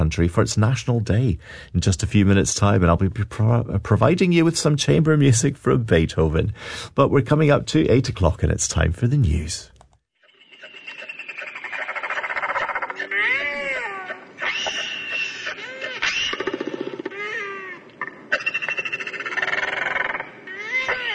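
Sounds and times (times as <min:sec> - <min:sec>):
speech: 0:00.1 - 0:09.7
Toroa Royal Albatross call: 0:10.2 - 0:17.4, 0:18.0 - 0:21.1.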